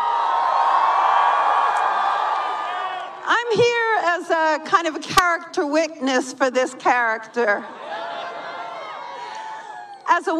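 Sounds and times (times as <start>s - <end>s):
large crowd cheering and roaring: 0.0s - 3.6s, 7.6s - 10.1s
speech: 3.5s - 7.8s, 10.2s - 10.3s.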